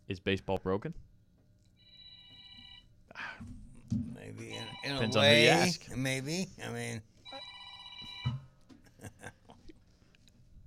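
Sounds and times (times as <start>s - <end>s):
speech: 0.1s - 1.1s, 4.8s - 7.1s
faint bright buzzy phone ringtone: 1.8s - 2.9s, 7.3s - 8.4s.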